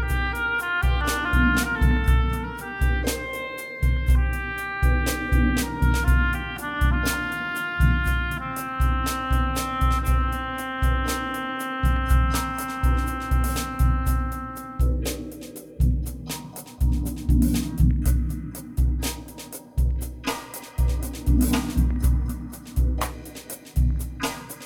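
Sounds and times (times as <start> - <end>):
oboe solo: 0.0 - 14.9
drums: 0.0 - 24.6.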